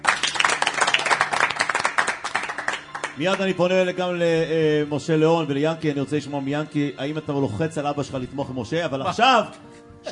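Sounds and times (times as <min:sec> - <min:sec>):
audience clapping: 0:00.0 - 0:03.6
speech: 0:03.2 - 0:10.1.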